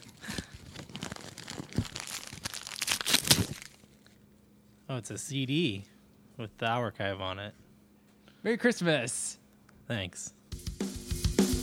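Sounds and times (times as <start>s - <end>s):
package sealed with lots of tape being unwrapped: 0.0s - 4.1s
speech: 4.9s - 7.6s, 8.4s - 10.4s.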